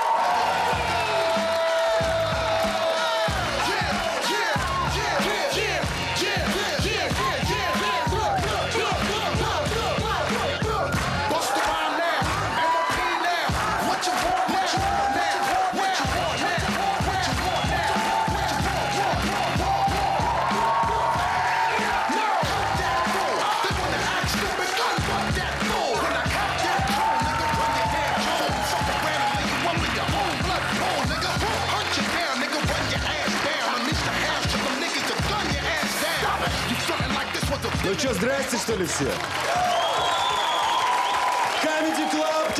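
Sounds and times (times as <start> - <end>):
large crowd applause and cheering: 0.0 - 42.5
speech: 38.7 - 39.4.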